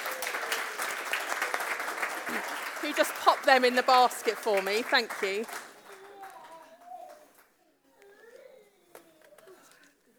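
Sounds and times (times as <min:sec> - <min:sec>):
audience applause for the helpers: 0:00.0 - 0:07.2
speech: 0:02.3 - 0:05.7.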